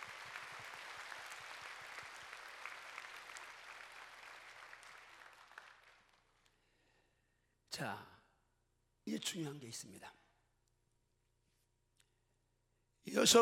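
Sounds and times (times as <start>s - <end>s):
audience applauding the choir: 0.0s - 6.3s
speech: 7.8s - 8.1s, 9.1s - 10.2s, 13.0s - 13.3s.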